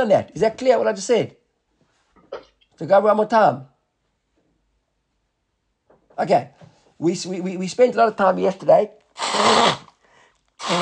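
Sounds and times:
speech: 0.0s - 1.4s, 2.3s - 3.7s, 6.2s - 9.9s, 10.6s - 10.8s
person blowing nose: 9.2s - 10.0s, 10.6s - 10.8s.

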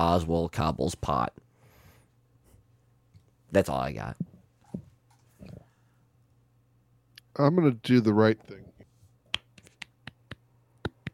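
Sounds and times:
speech: 0.0s - 1.4s, 3.5s - 4.3s, 7.4s - 8.7s
faint steady hum: 0.0s - 11.1s
light finger snaps or claps: 9.3s - 11.1s.

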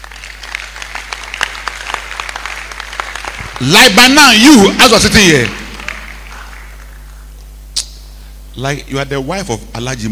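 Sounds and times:
audience clapping: 0.0s - 7.3s
speech: 3.6s - 5.6s, 8.6s - 10.1s.

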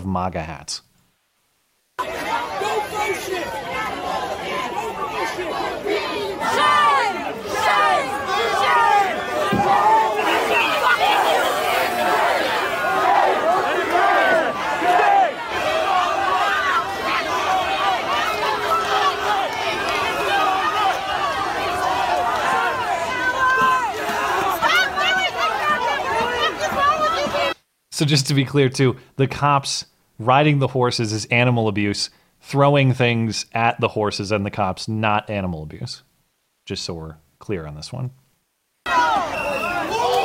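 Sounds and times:
speech: 0.0s - 0.9s, 2.0s - 6.8s, 28.0s - 36.1s, 36.7s - 38.2s
large crowd shouting and yelling at police: 2.0s - 27.6s, 38.8s - 40.2s.

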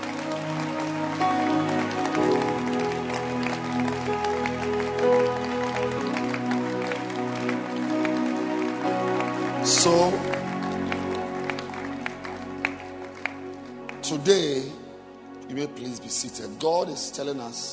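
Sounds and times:
audience clapping hands: 0.0s - 14.8s
speech: 9.8s - 10.4s, 14.2s - 14.7s, 15.6s - 17.7s.

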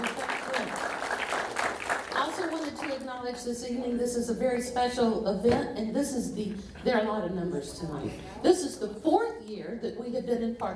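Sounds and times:
audience applause: 0.0s - 3.0s
speech: 3.2s - 10.7s.

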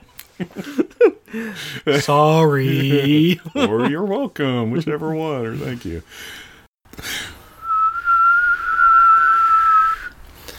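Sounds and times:
speech: 0.4s - 7.2s
tea kettle whistling: 7.6s - 10.1s.

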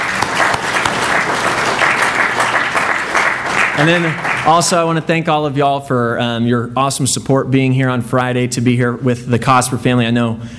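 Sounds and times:
audience applause: 0.0s - 5.0s
speech: 3.8s - 10.5s.

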